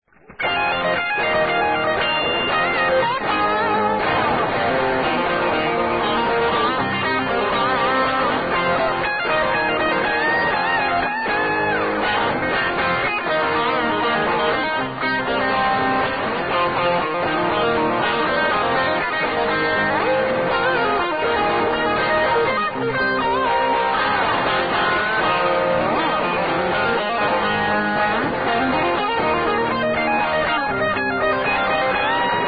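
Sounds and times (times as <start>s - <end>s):
fast pentatonic solo in F: 0.4s - 32.4s.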